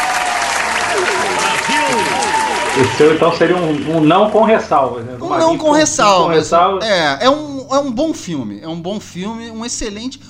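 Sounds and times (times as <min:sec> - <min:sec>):
round of applause from many hands: 0:00.0 - 0:04.6
voices calling out: 0:00.6 - 0:09.7
speech: 0:02.8 - 0:10.2.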